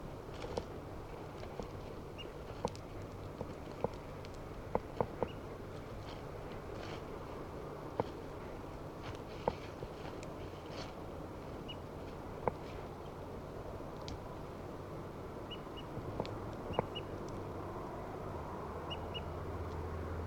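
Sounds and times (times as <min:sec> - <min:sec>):
low hum: 0:00.0 - 0:20.2
footsteps walking outdoors: 0:00.2 - 0:13.0.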